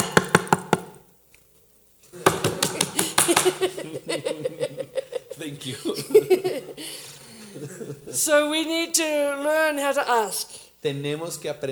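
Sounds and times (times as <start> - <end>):
forceful knocking: 0.0 - 1.0, 2.2 - 3.8
laughter: 2.1 - 8.5
speech: 5.5 - 7.0, 7.6 - 11.6.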